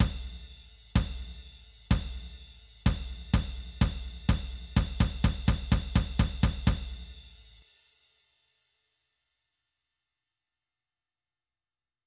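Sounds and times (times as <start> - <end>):
tom drum stabs: 0.0 - 7.6.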